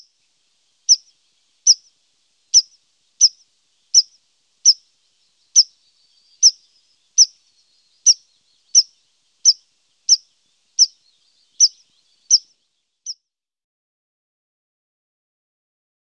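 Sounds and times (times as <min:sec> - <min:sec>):
tree pipit giving sharp clipped single notes: 0:00.0 - 0:12.5.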